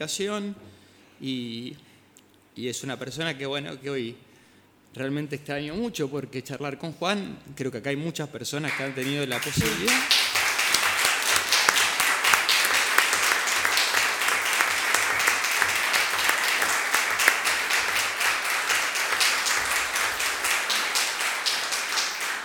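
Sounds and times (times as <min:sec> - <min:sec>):
speech: 0:00.0 - 0:01.9, 0:02.6 - 0:04.3, 0:04.9 - 0:10.2
audience applause: 0:08.8 - 0:22.4.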